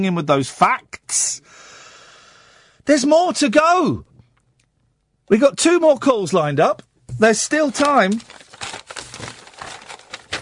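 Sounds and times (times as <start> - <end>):
speech: 0.0 - 1.7, 2.9 - 4.1, 5.3 - 8.7
bits of paper being shuffled: 7.2 - 10.4.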